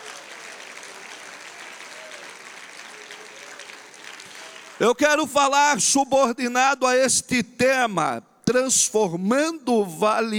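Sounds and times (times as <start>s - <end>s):
audience applauding: 0.0s - 5.2s
speech: 4.8s - 10.3s.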